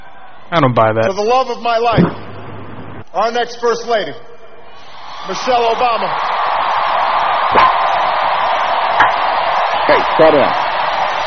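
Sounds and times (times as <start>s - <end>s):
crowd cheering: 0.0s - 0.6s, 4.6s - 11.2s
speech: 0.5s - 2.2s, 3.1s - 4.3s, 5.2s - 6.3s, 9.9s - 10.6s.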